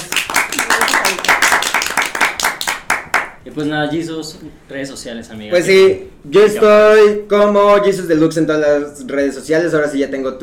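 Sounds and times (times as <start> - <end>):
applause: 0.0 - 3.4
speech: 3.4 - 10.4.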